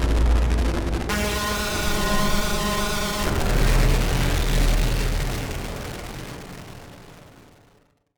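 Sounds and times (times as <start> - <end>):
distorted static horns: 1.1 - 7.0.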